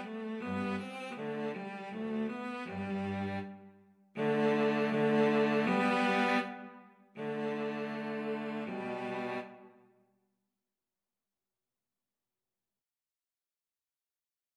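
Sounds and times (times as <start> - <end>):
cello duet: 0.0 - 3.5, 4.2 - 9.6.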